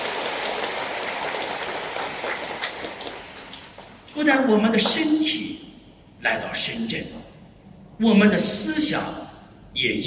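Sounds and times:
audience applause: 0:00.0 - 0:04.0
speech: 0:04.2 - 0:05.5, 0:06.2 - 0:07.2, 0:08.0 - 0:09.2, 0:09.8 - 0:10.0.

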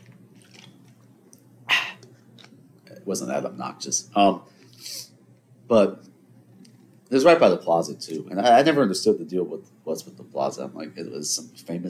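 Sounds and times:
faint low hum: 0:00.0 - 0:11.8
quick sip of water: 0:01.7 - 0:02.2
speech: 0:03.1 - 0:05.0, 0:05.7 - 0:06.1, 0:07.1 - 0:11.8.

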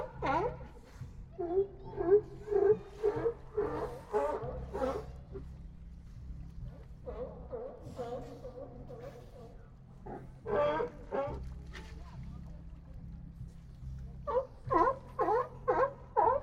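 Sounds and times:
hoarse animal barks at Old Fisherman's Wharf, Monterey Bay: 0:00.0 - 0:05.5, 0:06.8 - 0:11.9, 0:14.2 - 0:16.4
steady low droning rumble: 0:00.0 - 0:16.4.

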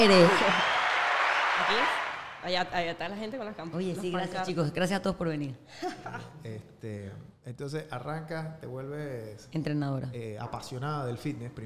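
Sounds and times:
speech: 0:00.0 - 0:00.7, 0:01.6 - 0:11.6
audience applause: 0:00.0 - 0:02.7.

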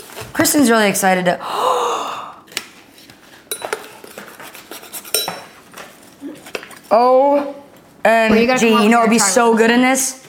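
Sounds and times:
speech: 0:00.4 - 0:01.9, 0:06.9 - 0:10.2
cutlery clinking against dishes in a home kitchen: 0:03.5 - 0:05.9.

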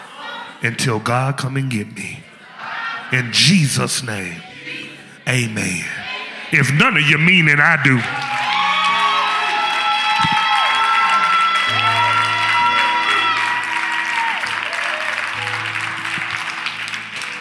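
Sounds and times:
speech: 0:00.6 - 0:02.2, 0:03.1 - 0:04.5, 0:05.3 - 0:08.2
sustained organ or keyboard chords: 0:03.1 - 0:10.0, 0:11.0 - 0:17.3
large audience clapping and cheering: 0:06.8 - 0:17.3
whoops and shouts: 0:08.0 - 0:15.3.

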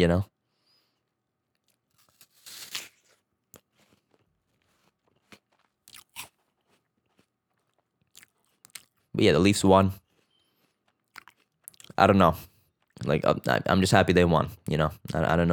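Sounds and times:
speech: 0:00.0 - 0:00.3, 0:09.2 - 0:10.0, 0:12.0 - 0:15.5
biting and chewing a crisp apple: 0:01.5 - 0:09.1, 0:09.9 - 0:13.3.

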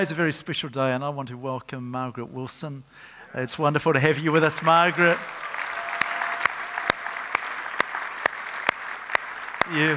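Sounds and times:
speech: 0:00.0 - 0:05.4, 0:09.7 - 0:09.9
audience applauding: 0:04.3 - 0:09.9.

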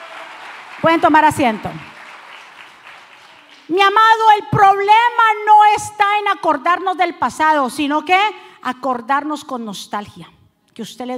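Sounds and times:
audience applause: 0:00.0 - 0:03.7
speech: 0:00.8 - 0:01.9, 0:03.7 - 0:11.1.

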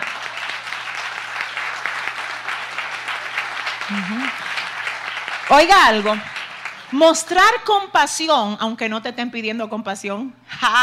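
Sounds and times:
audience applause: 0:00.0 - 0:07.5
brief vocal sound: 0:03.9 - 0:04.4
speech: 0:03.9 - 0:04.4, 0:05.5 - 0:06.3, 0:06.9 - 0:10.8.

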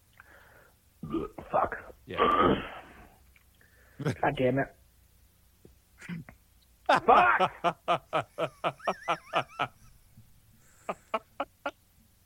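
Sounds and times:
burp: 0:01.0 - 0:01.5, 0:02.1 - 0:03.0
speech: 0:01.1 - 0:02.7, 0:04.0 - 0:04.8, 0:06.9 - 0:09.8
laughter: 0:06.9 - 0:10.0, 0:10.7 - 0:11.8.

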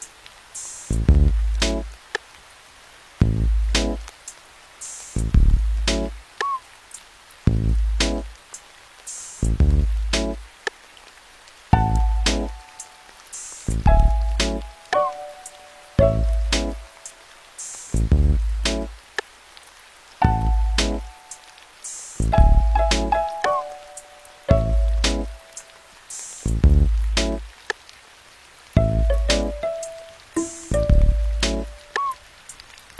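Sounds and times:
soft even rain-like hiss: 0:00.0 - 0:32.9
heavy low thumps with crisp clicks: 0:00.9 - 0:01.8, 0:03.2 - 0:03.9, 0:05.2 - 0:06.0, 0:07.5 - 0:08.3, 0:09.4 - 0:10.3, 0:13.7 - 0:14.5, 0:16.0 - 0:16.6, 0:18.0 - 0:18.8, 0:20.2 - 0:20.8, 0:22.3 - 0:23.0, 0:26.5 - 0:27.4, 0:28.8 - 0:29.3, 0:30.7 - 0:31.6
simple mid-pitched melody of held notes: 0:11.7 - 0:12.8, 0:13.8 - 0:17.0, 0:20.2 - 0:21.4, 0:22.3 - 0:25.7, 0:28.8 - 0:32.1.

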